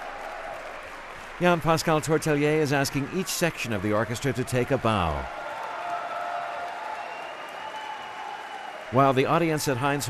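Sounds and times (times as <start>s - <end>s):
concert audience at Heinz Hall applauding an orchestra's principal timpanist: 0.0s - 10.0s
speech: 1.4s - 5.4s, 8.9s - 10.0s.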